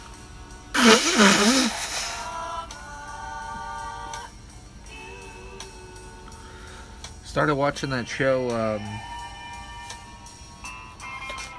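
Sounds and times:
faint steady hum: 0.0 - 11.5
nose blowing: 0.8 - 2.6
speech: 7.4 - 9.1.

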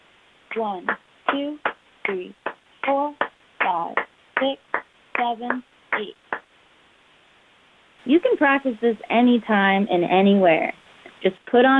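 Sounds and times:
speech: 0.5 - 6.2, 8.0 - 11.7
hands clapping to a beat in double time: 0.5 - 6.5.

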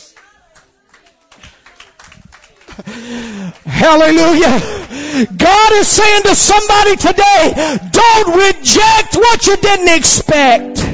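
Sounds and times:
audience clapping: 0.0 - 5.4
speech: 2.8 - 10.9.

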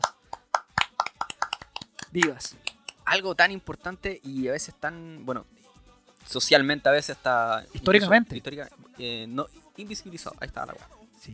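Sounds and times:
hand clapping: 0.0 - 3.0
speech: 2.1 - 5.6, 6.3 - 11.3.

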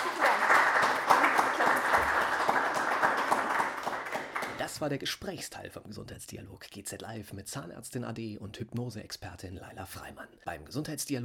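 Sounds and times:
audience applause: 0.0 - 4.8
speech: 4.8 - 11.2.

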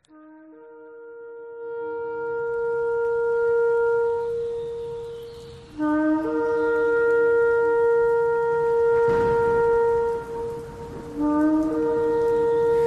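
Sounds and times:
ram's horn shofar being blown: 0.0 - 12.8.

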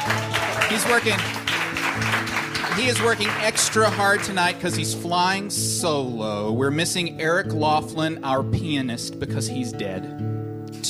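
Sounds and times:
audience applause: 0.0 - 4.9
speech: 0.1 - 1.4, 2.0 - 10.8.

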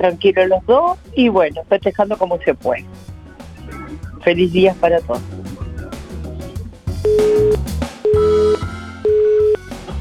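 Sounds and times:
speech: 0.0 - 3.1, 3.7 - 5.4
busy music bed: 0.0 - 10.0
phone line busy tone after a dropped call: 7.0 - 9.6.

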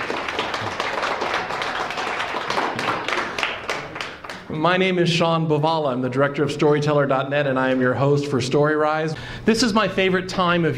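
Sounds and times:
audience applause: 0.0 - 4.5
speech: 4.6 - 10.7.

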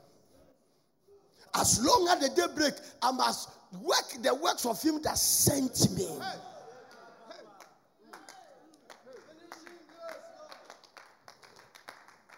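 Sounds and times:
speech: 1.5 - 6.5
church congregation scattered clapping during a sermon: 7.6 - 12.3.

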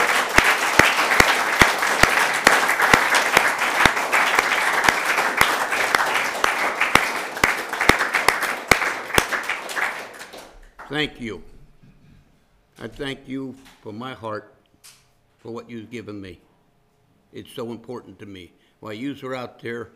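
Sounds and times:
audience applause: 0.0 - 10.8
speech: 10.9 - 11.5, 12.8 - 14.5, 15.4 - 16.5, 17.3 - 19.9.

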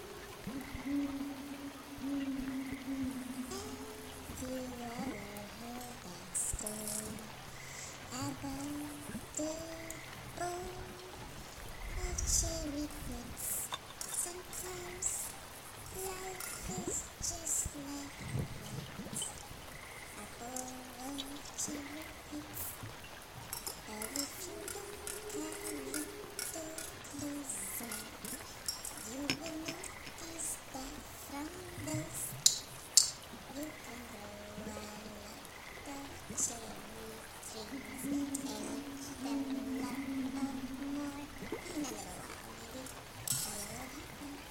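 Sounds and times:
low croaking calls: 0.0 - 44.4
trickling water at night: 0.0 - 44.4.

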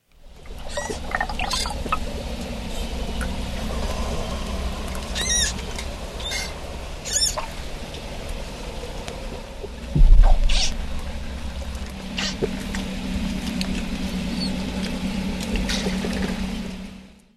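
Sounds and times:
manatee vocalization: 0.3 - 16.6.

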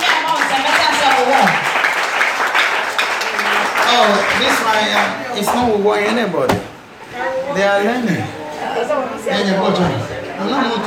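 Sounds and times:
audience clapping: 0.0 - 5.7
speech: 4.0 - 6.7, 7.6 - 10.8.

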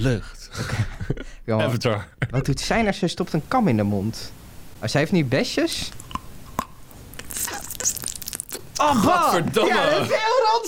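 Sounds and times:
speech: 0.0 - 6.0, 8.8 - 10.6
crunchy eating of a pickle (gherkin): 5.9 - 9.4.

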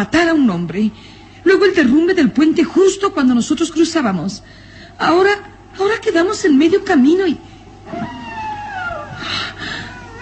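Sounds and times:
speech: 0.0 - 8.2
eerie wolf-like howl: 7.8 - 10.2.

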